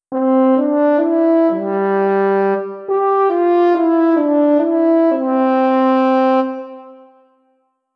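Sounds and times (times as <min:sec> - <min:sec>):
hunting horn: 0:00.1 - 0:07.4.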